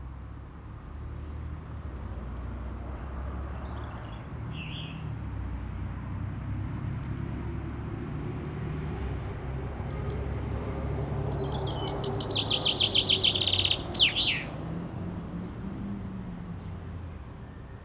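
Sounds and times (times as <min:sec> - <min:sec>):
cars: 0:00.0 - 0:17.8
birds: 0:08.7 - 0:14.7.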